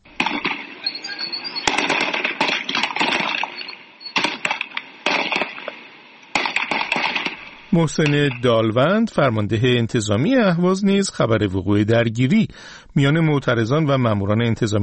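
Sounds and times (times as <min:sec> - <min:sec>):
gunfire during street protest clashes: 0:00.0 - 0:08.6
speech: 0:07.8 - 0:14.8.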